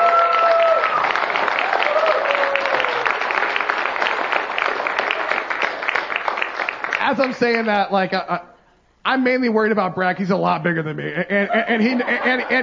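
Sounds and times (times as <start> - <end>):
cheers and whoops: 0.0 - 3.3
crowd clapping for youth leaders: 0.0 - 8.0
speech: 7.1 - 12.6
laughter: 10.9 - 12.6.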